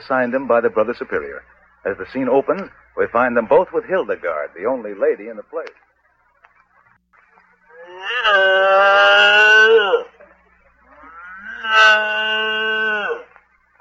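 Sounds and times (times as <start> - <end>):
speech: 0.0 - 5.8, 8.2 - 10.1, 11.7 - 12.8
cow mooing: 7.7 - 10.1, 10.9 - 13.3.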